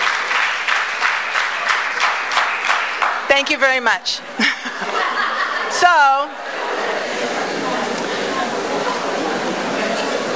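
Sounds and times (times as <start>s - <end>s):
audience clapping: 0.0s - 3.7s
speech: 3.3s - 4.9s, 5.8s - 6.4s
laughter: 4.3s - 10.2s.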